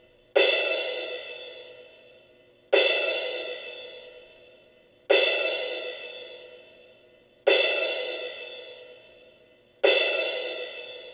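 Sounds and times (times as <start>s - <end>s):
cymbals: 0.4s - 11.1s.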